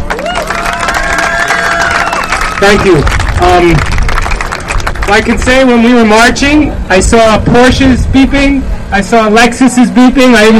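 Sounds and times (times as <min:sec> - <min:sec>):
audience applause: 0:00.0 - 0:05.6
speech: 0:02.6 - 0:03.9, 0:05.1 - 0:10.5.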